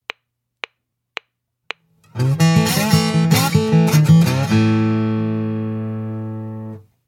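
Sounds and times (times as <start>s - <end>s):
slide guitar: 2.1s - 6.8s.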